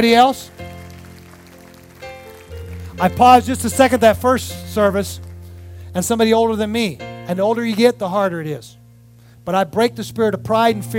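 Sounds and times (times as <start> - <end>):
speech: 0.0 - 0.6, 3.0 - 5.3, 6.0 - 8.8, 9.4 - 10.9
audience hand clapping: 0.0 - 5.6.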